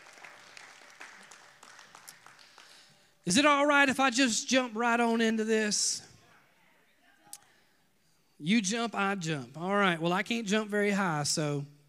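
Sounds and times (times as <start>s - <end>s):
audience hand clapping: 0.0s - 3.0s
speech: 3.3s - 6.0s, 8.4s - 11.7s.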